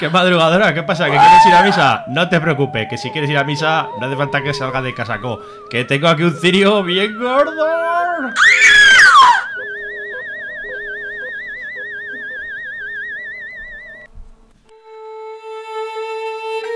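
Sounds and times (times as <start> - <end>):
speech: 0.0 - 9.3
eerie warbling electronic tones: 0.6 - 5.4, 6.2 - 14.1
loud shrill scream in radio drama: 1.0 - 2.1, 8.0 - 9.7
steady musical chord: 1.6 - 14.1.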